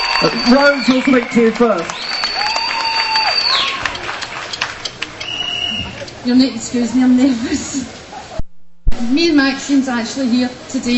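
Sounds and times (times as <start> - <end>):
audience clapping welcoming speakers at an anti-war movement event: 0.0 - 6.2
speech: 0.2 - 2.2, 6.2 - 8.0, 9.0 - 10.9.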